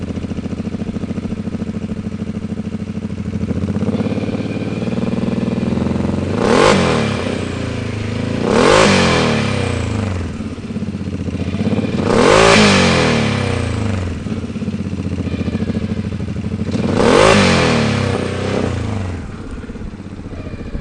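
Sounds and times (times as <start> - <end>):
Can-Am Maverick Turbo side-by-side vehicle, all systems: 0.0 - 20.7.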